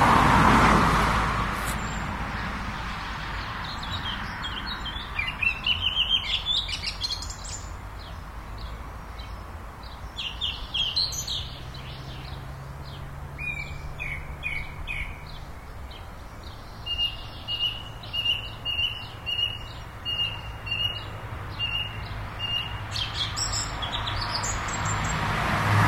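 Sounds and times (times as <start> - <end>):
cars: 0.0 - 25.8
birds: 0.4 - 25.8.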